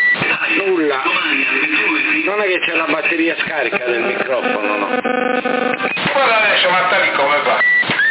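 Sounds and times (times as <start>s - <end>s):
radio static hissing: 0.2s - 8.0s
speech: 2.5s - 5.5s
high-pitched radio beeps: 4.1s - 6.0s.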